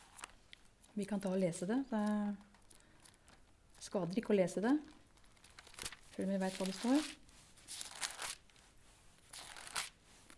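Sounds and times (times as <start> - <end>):
thin pages of a Bible being leafed through: 0.0 - 0.4, 5.1 - 10.3
speech: 1.0 - 2.5, 3.9 - 5.0, 6.2 - 7.8.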